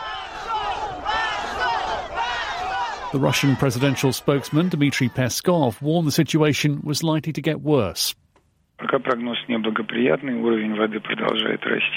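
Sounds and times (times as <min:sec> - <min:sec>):
crowd of protesters shouting Shame in unison: 0:00.0 - 0:05.8
speech: 0:03.1 - 0:08.2, 0:08.8 - 0:11.9.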